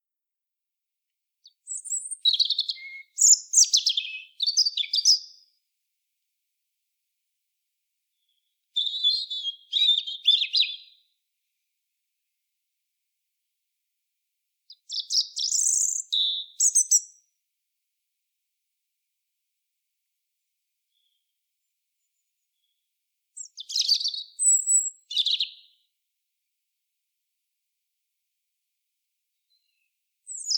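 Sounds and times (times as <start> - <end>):
European robin song: 1.4 - 5.6, 8.1 - 11.2, 14.7 - 17.4, 20.8 - 26.0, 29.3 - 30.5.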